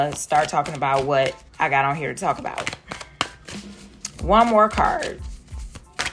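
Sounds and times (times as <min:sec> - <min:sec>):
speech: 0:00.0 - 0:02.8, 0:03.5 - 0:05.3
card drawn from a deck during a card reading: 0:02.6 - 0:06.1.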